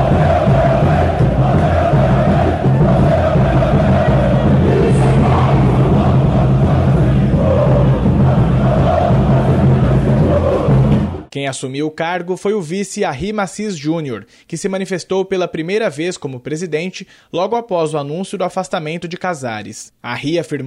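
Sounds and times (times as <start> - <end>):
large crowd of football fans chanting in celebration: 0.0 - 11.3
speech: 11.4 - 20.6.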